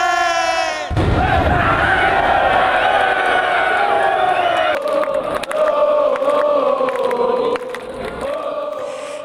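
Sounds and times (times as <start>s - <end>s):
dense crowd of football fans roaring and cheering in celebration: 0.0s - 8.9s.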